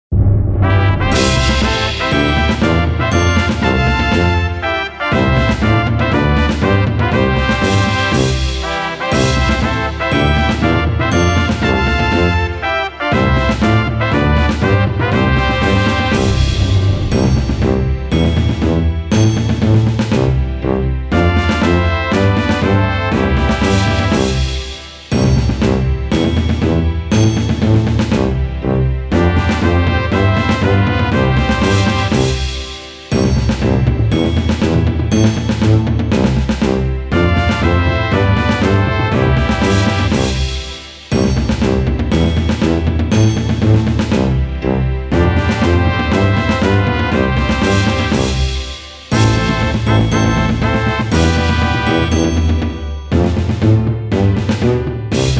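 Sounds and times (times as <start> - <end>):
anthem backing track: 0.2 - 55.3.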